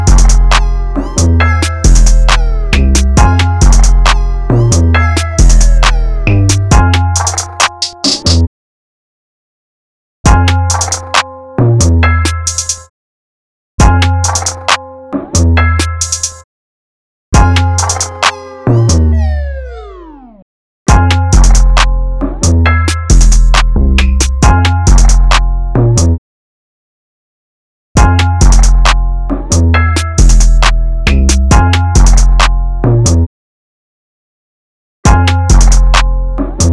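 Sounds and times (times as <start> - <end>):
instrumental music: 0.0 - 8.5, 10.3 - 12.9, 13.8 - 16.4, 17.4 - 26.1, 28.0 - 33.2, 35.1 - 36.7.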